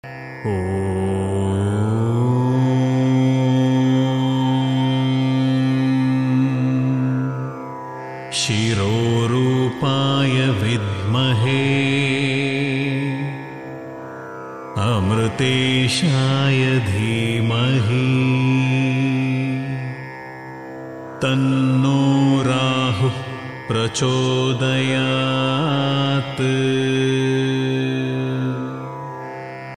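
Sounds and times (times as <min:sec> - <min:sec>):
mantra chanting: 0:00.4 - 0:13.7, 0:14.7 - 0:20.2, 0:21.2 - 0:29.7.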